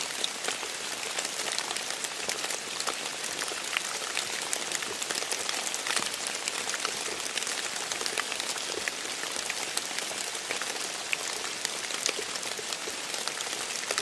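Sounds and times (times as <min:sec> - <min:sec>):
rain in a forest: 0:00.0 - 0:14.0.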